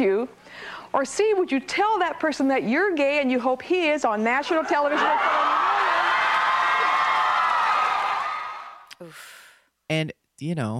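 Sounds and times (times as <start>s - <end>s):
speech: 0.0s - 5.7s, 9.9s - 10.7s
crowd of spectators cheering at the Coliseum: 4.5s - 9.0s.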